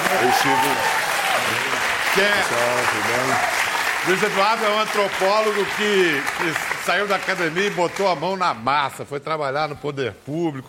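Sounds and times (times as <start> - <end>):
audience applause: 0.0 - 8.4
speech: 0.3 - 1.1, 2.1 - 10.6.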